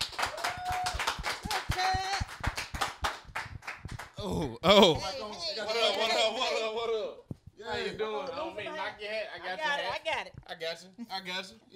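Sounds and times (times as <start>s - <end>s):
audience clapping for a guest: 0.0s - 4.2s
voices cheering: 0.2s - 2.3s
speech: 4.2s - 6.4s, 7.9s - 11.7s.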